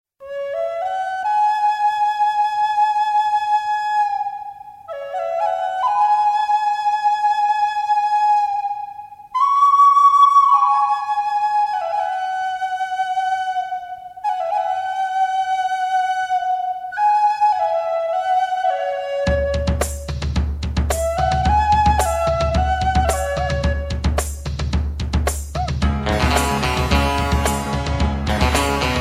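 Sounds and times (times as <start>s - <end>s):
flute: 0.2s - 24.5s, 25.6s - 29.0s.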